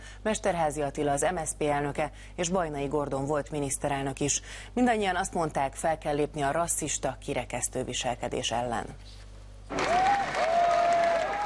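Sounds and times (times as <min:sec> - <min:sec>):
speech: 0:00.2 - 0:10.1
applause at a mass demonstration against Nazism: 0:09.7 - 0:11.4.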